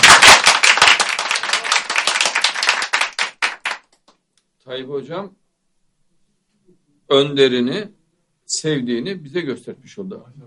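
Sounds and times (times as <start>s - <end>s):
crowd round of applause: 0.0s - 3.9s
speech: 4.7s - 5.4s, 6.7s - 10.4s.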